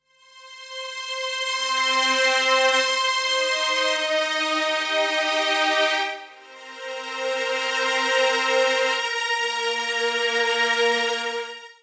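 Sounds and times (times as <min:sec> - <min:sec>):
strings: 0:00.2 - 0:11.8.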